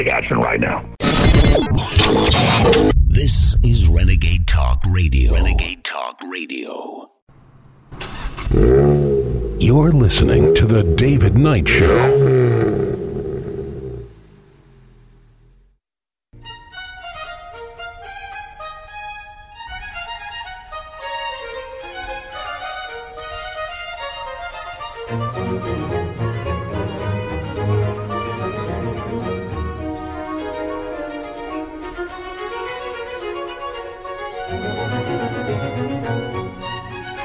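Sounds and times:
speech: 0.0s - 7.2s, 7.9s - 12.8s
baroque orchestral overture: 25.0s - 37.2s.

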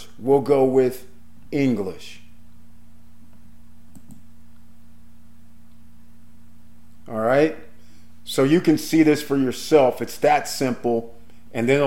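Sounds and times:
low electrical hum: 0.0s - 11.8s
speech: 0.2s - 2.2s, 7.1s - 7.6s, 8.3s - 11.8s
computer mouse clicks selecting auto translate from a menu: 3.9s - 4.2s.

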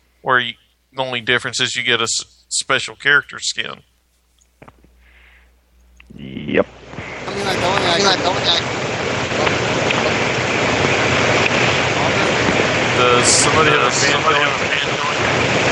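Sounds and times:
speech: 0.2s - 3.9s, 6.2s - 8.8s, 13.0s - 15.6s
electric fan running near the microphone: 6.2s - 15.6s.

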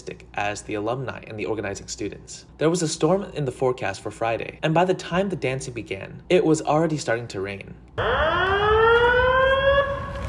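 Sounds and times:
speech: 0.0s - 9.2s
campus emergency alert siren: 8.0s - 10.2s.

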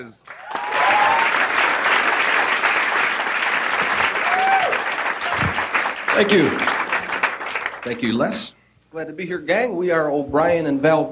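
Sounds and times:
speech: 0.0s - 1.3s, 6.2s - 6.8s, 7.8s - 11.1s
audience applause: 0.0s - 8.5s.

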